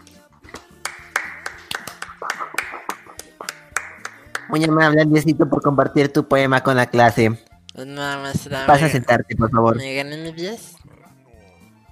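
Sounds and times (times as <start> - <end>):
applause: 0.5 - 4.6
speech: 4.5 - 10.8.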